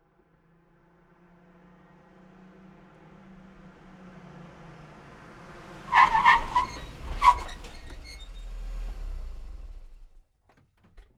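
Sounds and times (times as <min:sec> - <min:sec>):
car arriving: 0:01.9 - 0:10.2
car wheels squeaking: 0:05.9 - 0:08.8.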